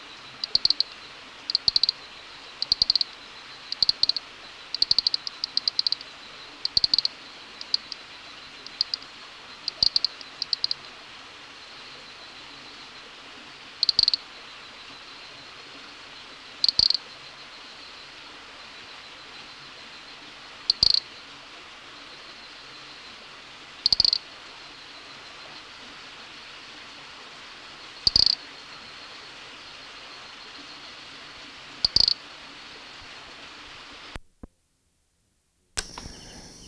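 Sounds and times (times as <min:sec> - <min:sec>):
soft background hiss: 0:00.0 - 0:36.6
Nesobia mjobergi call: 0:00.1 - 0:11.0, 0:13.7 - 0:14.3, 0:16.6 - 0:18.2, 0:20.6 - 0:21.2, 0:23.8 - 0:25.0, 0:28.0 - 0:28.5, 0:31.8 - 0:32.3, 0:35.8 - 0:36.6.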